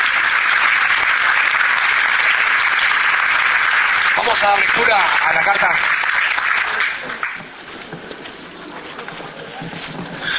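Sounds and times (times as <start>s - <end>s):
audience applause: 0.0s - 7.8s
speech: 4.3s - 6.0s.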